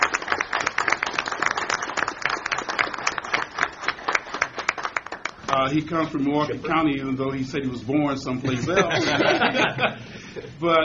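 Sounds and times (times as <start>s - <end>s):
audience applause: 0.0s - 5.7s
speech: 5.6s - 10.8s
laughter: 8.4s - 10.5s.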